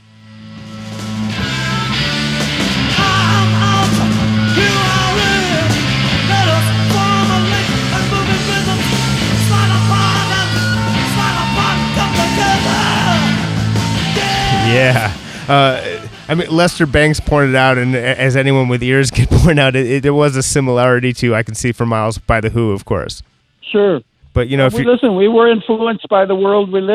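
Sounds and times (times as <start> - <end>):
loud live rock performance: 0.0 - 18.6
pounding bass line: 0.0 - 18.6
heavy distorted guitars: 0.0 - 19.5
crashing drums: 2.1 - 15.5
shouted vocals: 2.9 - 16.1
speech: 15.5 - 26.9.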